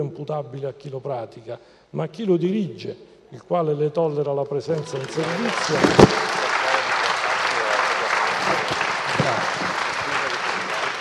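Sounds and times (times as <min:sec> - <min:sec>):
speech: 0:00.0 - 0:06.3
audience applause: 0:04.8 - 0:10.9.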